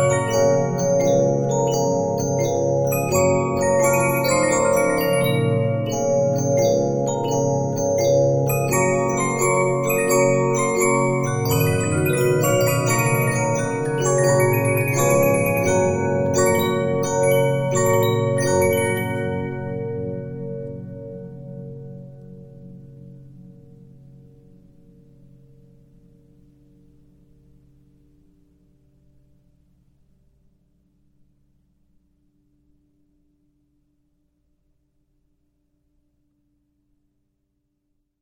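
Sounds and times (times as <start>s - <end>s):
Regina 15-inch disc music box: 0.0s - 21.0s.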